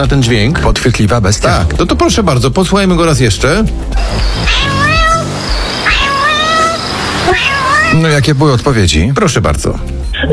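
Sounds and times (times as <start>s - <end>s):
speech: 0.0s - 4.8s, 8.0s - 10.3s
pet cat meowing: 4.4s - 8.2s.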